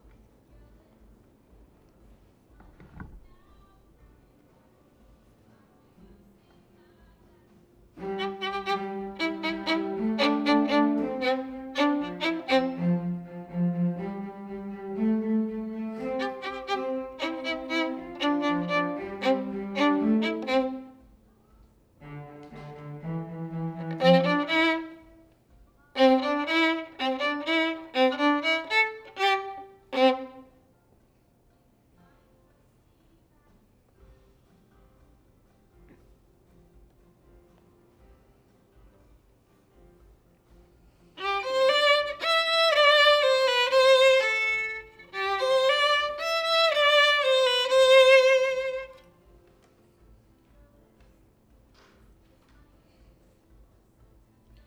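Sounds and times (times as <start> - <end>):
violin: 2.6 - 3.9, 7.9 - 30.7, 41.1 - 49.7.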